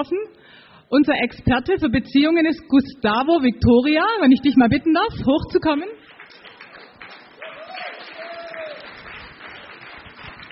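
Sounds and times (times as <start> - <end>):
speech: 0.0 - 6.2
audience applause: 6.1 - 10.5.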